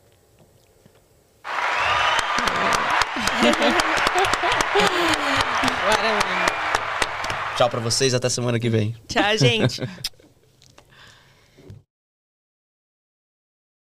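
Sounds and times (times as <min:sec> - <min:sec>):
applause sound effect: 0:01.4 - 0:08.2
laughter: 0:01.5 - 0:08.1
speech: 0:07.6 - 0:10.1.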